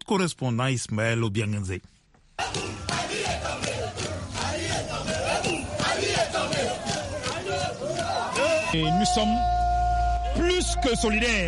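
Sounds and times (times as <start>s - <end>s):
speech: 0.1s - 2.7s, 8.7s - 9.6s, 10.4s - 11.4s
crowd in Libreville cheering and shouting after the coup: 2.4s - 11.4s.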